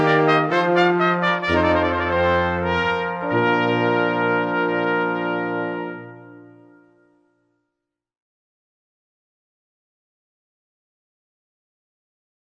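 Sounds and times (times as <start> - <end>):
brass rondeau: 0.0 - 7.3.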